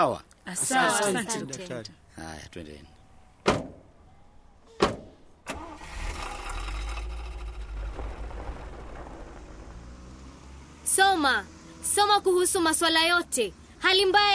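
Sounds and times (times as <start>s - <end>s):
speech: 0.0s - 3.6s, 11.0s - 14.3s
car doors slamming as people climb in: 3.4s - 3.9s, 4.8s - 5.2s
car engine starting and running: 5.4s - 14.3s.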